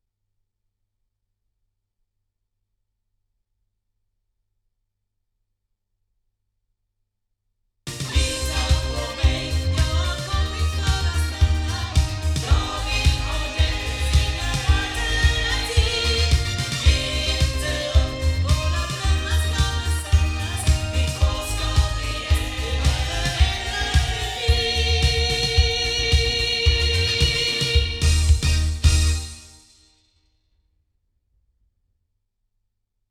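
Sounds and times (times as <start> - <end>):
loudspeakers: 7.9 - 29.3.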